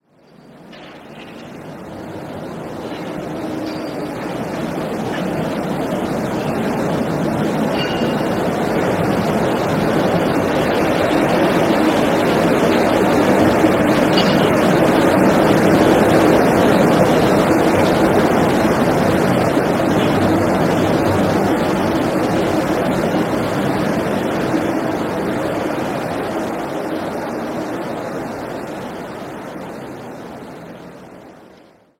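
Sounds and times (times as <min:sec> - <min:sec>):
stereo street ambience: 0:00.0 - 0:31.6.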